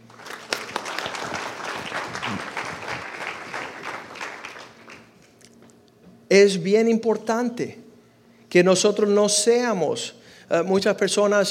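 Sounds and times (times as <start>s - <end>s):
audience applauding: 0.0s - 5.5s
speech: 6.3s - 7.8s, 8.5s - 11.4s.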